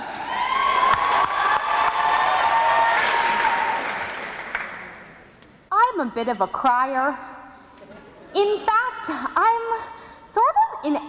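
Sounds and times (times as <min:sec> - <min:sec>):
audience applause at a live poetry show: 0:00.0 - 0:05.0
speech: 0:06.2 - 0:07.4, 0:08.4 - 0:11.0.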